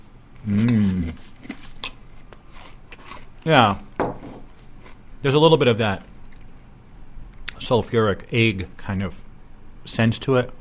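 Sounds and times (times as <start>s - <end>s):
speech: 0.4s - 0.7s, 3.4s - 3.8s, 5.2s - 6.1s, 7.6s - 9.2s, 9.8s - 10.6s
spoon scraping a bowl: 0.8s - 3.4s.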